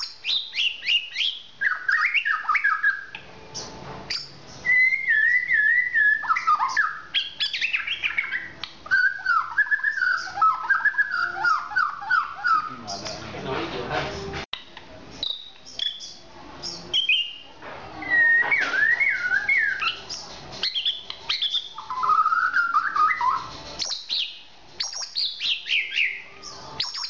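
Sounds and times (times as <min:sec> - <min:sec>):
Oriental magpie-robin whistled song: 0:00.0 - 0:13.3, 0:15.1 - 0:27.0.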